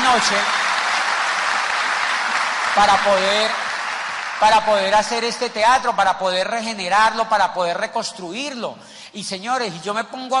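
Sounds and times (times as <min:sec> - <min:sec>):
audience applause for construction workers: 0:00.0 - 0:05.4
speech: 0:00.2 - 0:00.7, 0:02.8 - 0:03.6, 0:04.4 - 0:10.3.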